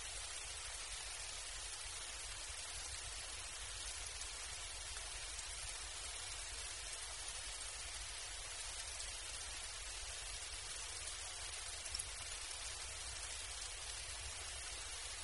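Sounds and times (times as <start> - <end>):
rain pattering: 0.0 - 15.2.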